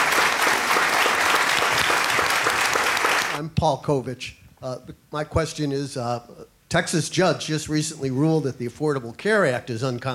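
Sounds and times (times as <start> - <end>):
audience applause: 0.0 - 3.4
speech: 3.4 - 10.1.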